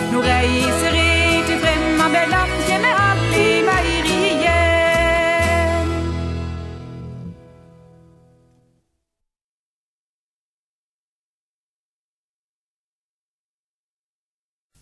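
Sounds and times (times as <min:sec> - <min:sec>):
reinlender folk dance music: 0:00.0 - 0:08.3.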